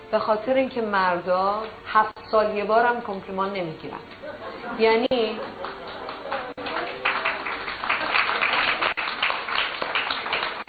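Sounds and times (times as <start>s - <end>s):
speech: 0.1s - 5.7s
laughter: 4.2s - 8.8s
audience applause mostly from women: 5.2s - 10.6s.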